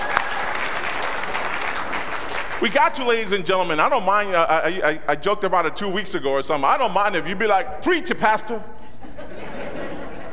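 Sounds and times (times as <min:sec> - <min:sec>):
audience applause: 0:00.0 - 0:02.9
speech: 0:02.6 - 0:08.8
laughter: 0:08.8 - 0:10.3.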